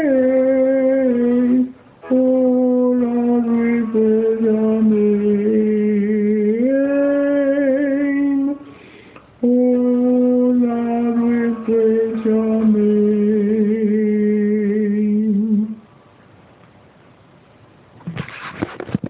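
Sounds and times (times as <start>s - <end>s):
tenor singing: 0.0s - 8.8s, 9.4s - 15.9s.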